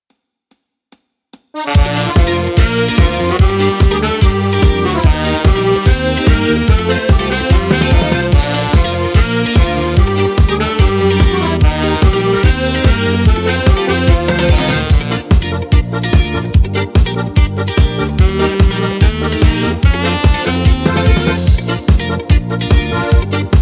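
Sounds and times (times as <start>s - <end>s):
acoustic music: 1.6s - 23.6s.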